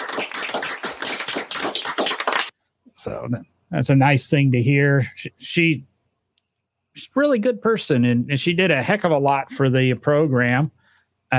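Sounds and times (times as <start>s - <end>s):
small round of applause: 0.0s - 2.5s
speech: 3.0s - 5.9s, 7.0s - 11.3s.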